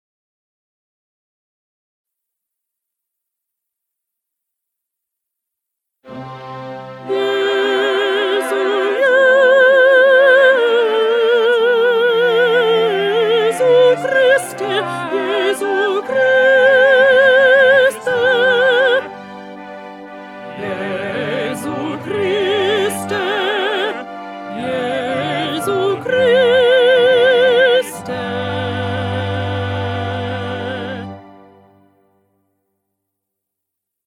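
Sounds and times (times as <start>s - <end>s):
alto singing a mass: 6.1s - 32.0s.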